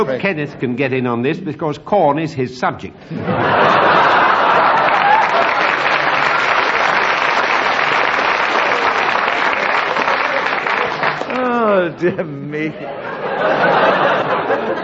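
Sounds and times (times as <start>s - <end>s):
speech: 0.0s - 4.3s, 12.0s - 13.8s, 14.5s - 14.8s
laughter: 3.1s - 14.8s
audience applause: 3.7s - 11.8s.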